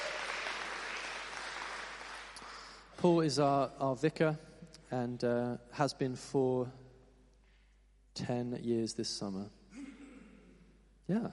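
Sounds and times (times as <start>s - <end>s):
congregation applause at a church service: 0.0s - 3.1s
speech: 3.0s - 6.8s, 8.2s - 9.6s, 11.1s - 11.3s.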